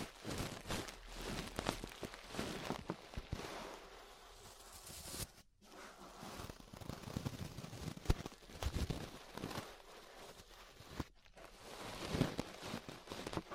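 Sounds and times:
ear brushing scratchy rustling: 0.0s - 13.5s.

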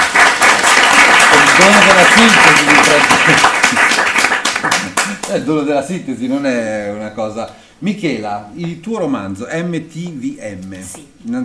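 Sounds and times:
audience applause: 0.0s - 5.3s
speech: 1.6s - 3.9s, 5.3s - 11.4s
laughter: 2.7s - 3.9s.

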